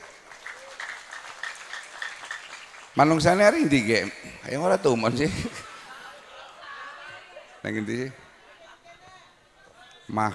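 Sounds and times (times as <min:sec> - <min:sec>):
applause: 0:00.0 - 0:04.0
speech: 0:03.0 - 0:05.6, 0:07.6 - 0:08.2, 0:10.1 - 0:10.3
laughter: 0:04.9 - 0:08.8.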